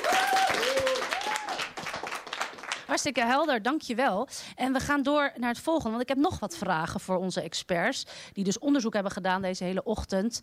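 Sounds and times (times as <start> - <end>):
audience applause at a panel discussion: 0.0 - 2.9
speech: 2.9 - 10.4.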